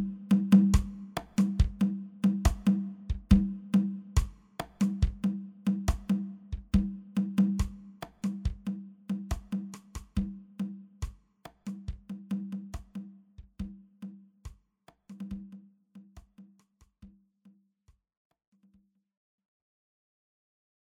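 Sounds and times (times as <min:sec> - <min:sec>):
congas playing kwela: 0:00.0 - 0:13.1.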